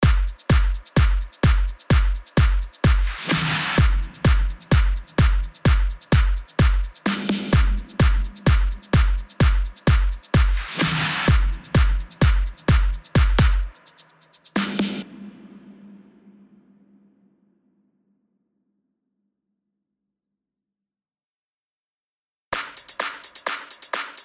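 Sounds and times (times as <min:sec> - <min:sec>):
drum effects: 0:00.0 - 0:16.3, 0:22.5 - 0:24.2.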